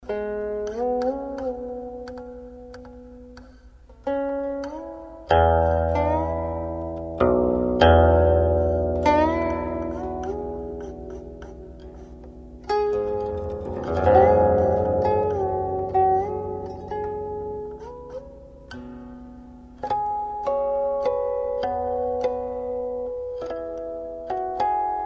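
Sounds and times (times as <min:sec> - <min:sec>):
guqin music: 0:00.0 - 0:25.0.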